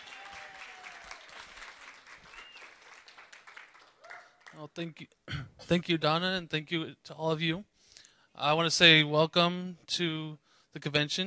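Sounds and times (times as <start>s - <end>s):
applause welcoming a chapter president at a convention: 0.0s - 4.7s
speech: 4.6s - 7.7s, 8.4s - 11.2s.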